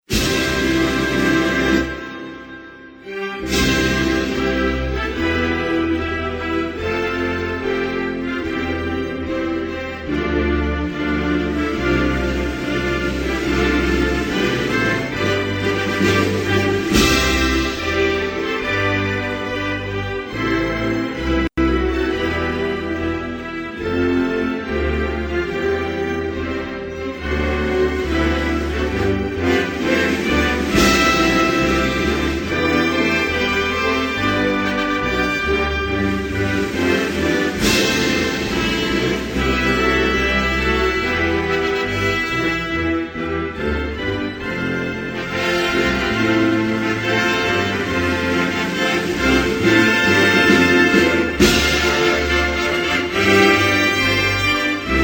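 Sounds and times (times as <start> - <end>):
national anthem: 0.0 - 55.0.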